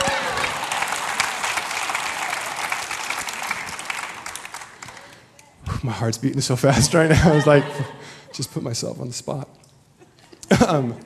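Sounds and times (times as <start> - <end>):
audience applause: 0.0 - 5.3
speech: 5.8 - 9.5, 10.7 - 11.0
laughter: 6.7 - 8.7.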